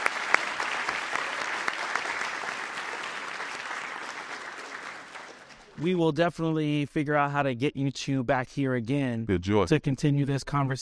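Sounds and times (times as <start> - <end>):
audience applause: 0.0 - 6.0
speech: 5.8 - 10.7.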